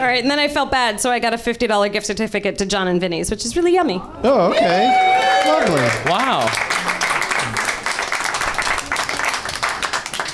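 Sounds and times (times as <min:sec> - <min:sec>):
speech: 0:00.0 - 0:06.7
group of people clapping: 0:04.3 - 0:10.3.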